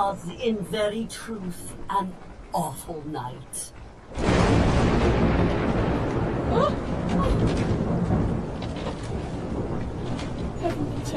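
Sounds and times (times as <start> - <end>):
speech: 0.0 - 5.8, 6.5 - 7.8, 10.6 - 11.1
rain: 0.0 - 11.1
wind: 0.0 - 11.1
thunder: 3.7 - 11.1.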